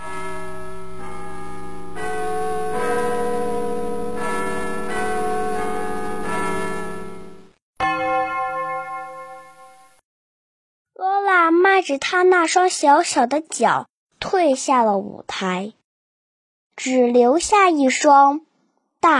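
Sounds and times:
clock bell striking twelve: 0:00.0 - 0:10.0
speech: 0:11.9 - 0:15.8, 0:16.8 - 0:19.1.

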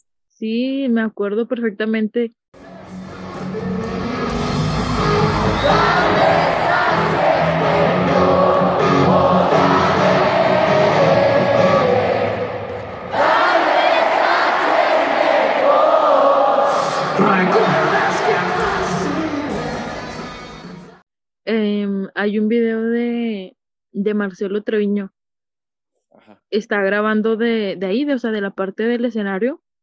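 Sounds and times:
speech: 0:00.4 - 0:02.4, 0:22.2 - 0:25.2, 0:26.2 - 0:29.6
huge concert crowd singing along loudly in unison: 0:02.6 - 0:21.0.

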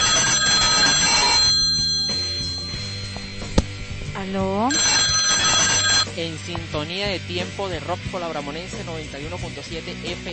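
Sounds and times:
telephone ringing with an incoming call to a radio show: 0:00.0 - 0:06.1
speech: 0:04.3 - 0:04.9, 0:06.2 - 0:10.3.

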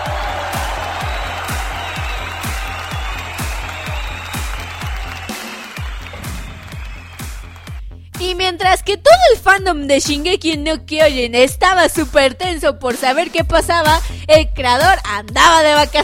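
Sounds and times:
applause: 0:00.0 - 0:07.8
speech: 0:08.6 - 0:16.0.

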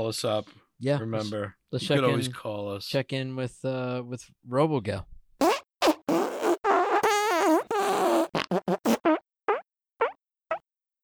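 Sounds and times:
speech: 0:00.0 - 0:05.2
loud drawn-out fart with sputtering toots: 0:05.4 - 0:10.6.

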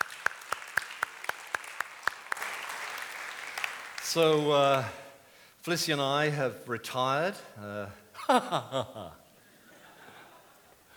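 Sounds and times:
audience applause: 0:00.0 - 0:04.9
speech: 0:04.1 - 0:05.0, 0:05.6 - 0:09.2
laughter: 0:08.2 - 0:10.9.

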